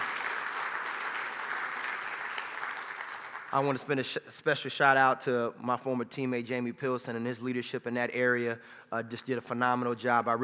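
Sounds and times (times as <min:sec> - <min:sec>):
audience applause: 0:00.0 - 0:03.6
speech: 0:03.5 - 0:10.4.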